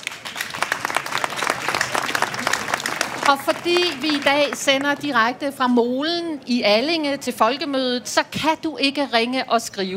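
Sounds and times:
audience applauding: 0.0 - 5.2
speech: 3.3 - 9.9.

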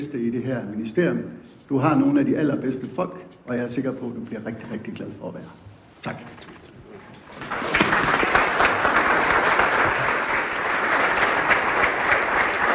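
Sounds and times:
speech: 0.0 - 6.5
audience applause: 7.4 - 12.7.

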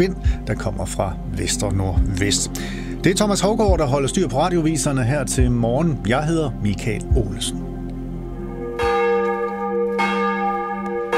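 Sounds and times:
speech: 0.0 - 7.7
church bells of Vor Frue Kirke in Copenhagen ringing for morning service: 8.4 - 11.1.

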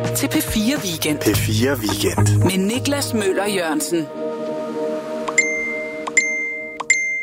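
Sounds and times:
speech: 0.2 - 4.3
mobile phone notification ping: 5.4 - 7.2.

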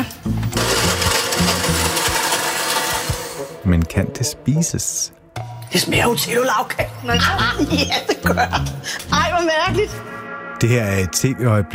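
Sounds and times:
blender blending layer cake with chocolate milk: 0.4 - 3.6
speech: 4.0 - 11.7
laughter: 7.1 - 9.0.

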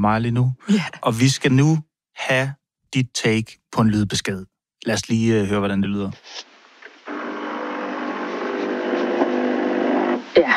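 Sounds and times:
speech: 0.0 - 6.5, 10.4 - 10.5
coffee machine whirring hum: 7.1 - 10.2.

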